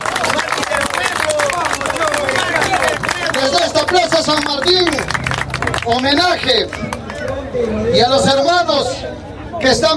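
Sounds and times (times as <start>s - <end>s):
crowd clapping: 0.0s - 7.8s
crowd voices: 0.0s - 9.9s
speech: 3.9s - 5.2s, 5.9s - 7.0s, 7.6s - 9.9s.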